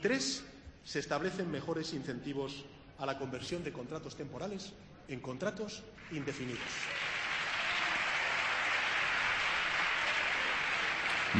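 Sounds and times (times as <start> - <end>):
speech: 0.0 - 7.1
applause in parliament: 6.0 - 11.3.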